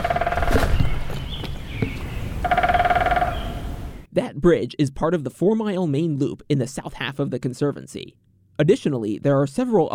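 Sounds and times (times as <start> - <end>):
woodpecker pecking on wood: 0.0 - 3.4
speech: 4.4 - 9.9.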